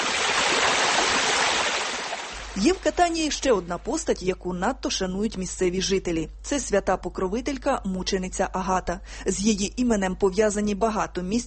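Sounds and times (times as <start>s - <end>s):
small fountains splashing below the Elephant statue in Catania: 0.0s - 3.7s
speech: 2.6s - 11.4s.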